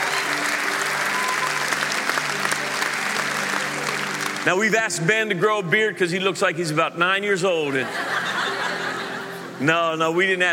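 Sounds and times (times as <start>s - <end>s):
audience applause welcoming a new middle school director to a church staff: 0.0s - 4.8s
speech: 4.4s - 8.1s, 9.6s - 10.5s
laughter: 7.6s - 9.6s.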